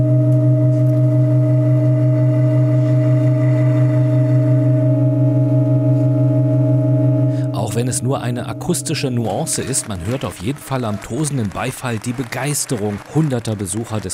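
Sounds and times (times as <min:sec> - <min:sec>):
sustained organ pipe tones: 0:00.0 - 0:11.0
speech: 0:07.8 - 0:14.1.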